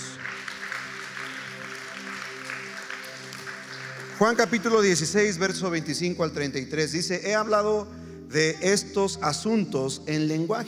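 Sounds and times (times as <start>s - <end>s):
audience applause: 0.0s - 5.1s
speech: 4.2s - 10.6s.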